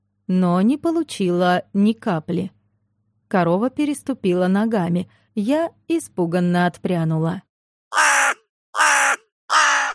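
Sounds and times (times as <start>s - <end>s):
speech: 0.3s - 2.6s, 3.3s - 8.1s
crow cawing as it flies overhead: 7.9s - 9.9s.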